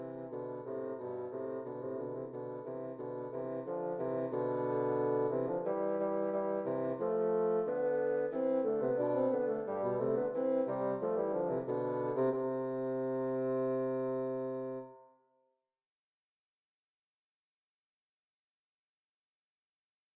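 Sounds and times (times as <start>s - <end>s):
rigaudon dance piece on bassoon: 0.0s - 15.0s.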